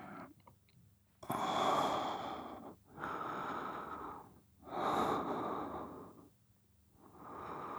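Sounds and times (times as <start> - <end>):
person sleep breathing ASMR: 1.3 - 6.4, 7.0 - 7.7.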